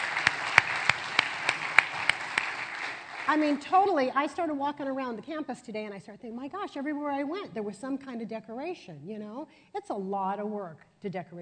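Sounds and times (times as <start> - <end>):
audience applause: 0.0 - 3.9
speech: 3.3 - 11.4.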